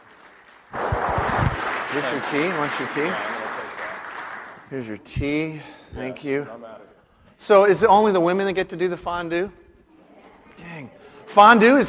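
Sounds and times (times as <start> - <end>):
audience applause: 0.0 - 4.8
speech: 1.9 - 3.4, 4.7 - 9.6, 10.6 - 11.8.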